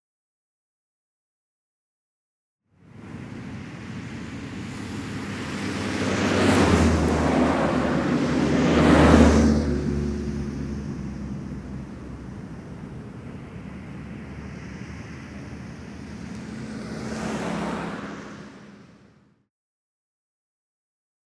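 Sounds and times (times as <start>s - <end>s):
Las Vegas traffic: 2.9s - 19.2s.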